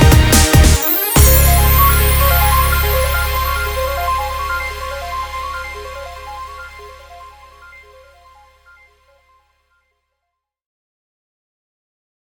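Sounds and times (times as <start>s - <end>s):
instrumental music: 0.0s - 9.3s.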